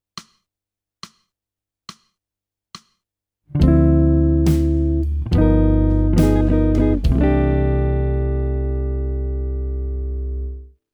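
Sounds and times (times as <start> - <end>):
jazz music: 3.6 - 10.1.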